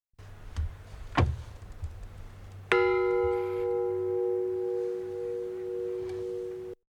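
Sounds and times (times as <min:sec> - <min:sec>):
bell ringing: 0:02.7 - 0:06.8.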